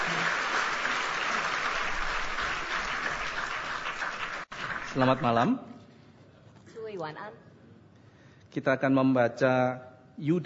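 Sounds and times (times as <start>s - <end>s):
audience applause welcoming a speaker at a Christian sermon gathering: 0.0s - 5.3s
speech: 5.0s - 5.7s, 7.0s - 7.5s, 8.5s - 10.4s.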